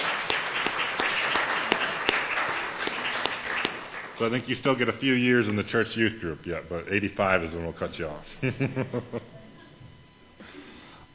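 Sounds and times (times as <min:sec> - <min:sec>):
audience applause: 0:00.0 - 0:04.4
speech: 0:04.2 - 0:09.2
laughter: 0:08.3 - 0:09.9.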